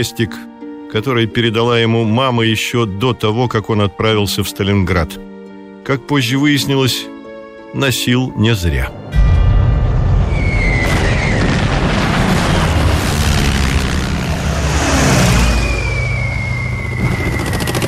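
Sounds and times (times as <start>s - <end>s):
speech: 0.0s - 7.1s, 7.7s - 9.2s
bombing explosions: 9.1s - 17.5s
German warplane engines: 10.9s - 17.8s.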